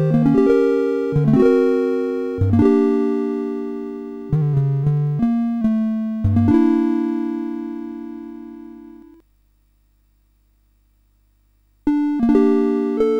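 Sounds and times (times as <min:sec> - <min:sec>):
nocturne on CSG8580R5 SID chip: 0:00.0 - 0:09.2, 0:11.9 - 0:13.1.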